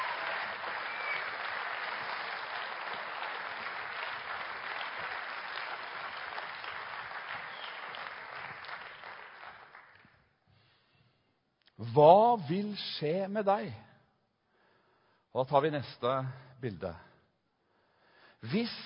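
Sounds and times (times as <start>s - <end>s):
audience applause: 0.0s - 10.2s
speech: 11.9s - 13.9s, 15.4s - 17.1s, 18.4s - 18.8s.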